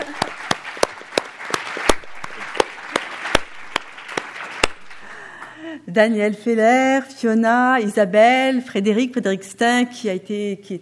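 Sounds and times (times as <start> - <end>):
audience applause: 0.0 - 5.5
speech: 5.9 - 10.8.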